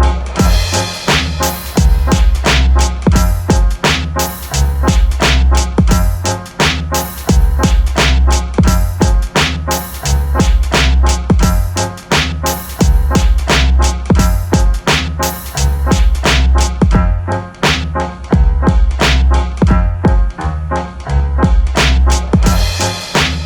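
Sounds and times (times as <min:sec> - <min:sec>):
boom bap instrumental: 0:00.1 - 0:23.4.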